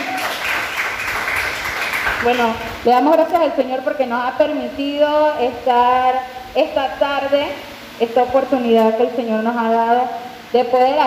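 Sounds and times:
crowd applauding: 0:00.0 - 0:02.6
speech: 0:02.2 - 0:11.0.

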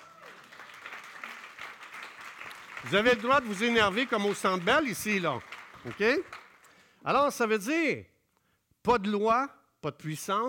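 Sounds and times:
audience applauding: 0:00.0 - 0:06.9
speech: 0:02.8 - 0:06.4, 0:07.0 - 0:08.1, 0:08.8 - 0:10.4.

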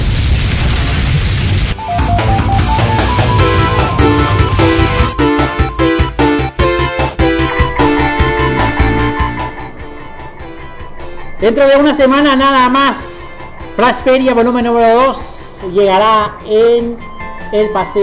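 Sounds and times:
fire jutsu explosion roaring blast: 0:00.0 - 0:05.8
rhythmic booming hits: 0:00.0 - 0:10.9
tonal music-like tones: 0:01.8 - 0:15.4
speech: 0:11.5 - 0:13.0, 0:13.8 - 0:18.0.

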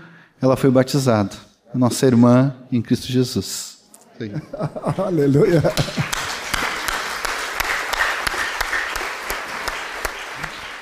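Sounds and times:
speech: 0:00.4 - 0:06.1
laughter: 0:04.2 - 0:06.8
audience applause: 0:05.4 - 0:10.7.

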